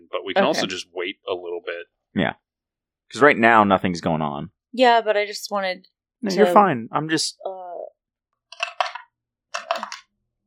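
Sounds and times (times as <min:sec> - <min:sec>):
speech: 0:00.3 - 0:02.4, 0:03.1 - 0:07.5
dice clattering across a hard surface: 0:08.5 - 0:09.0, 0:09.6 - 0:10.0.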